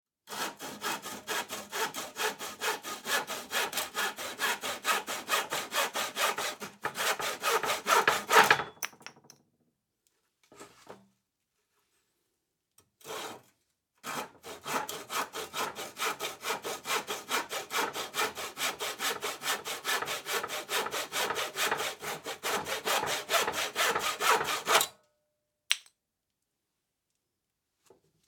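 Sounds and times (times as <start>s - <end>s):
hand saw sawing: 0.3s - 8.6s, 13.0s - 24.9s.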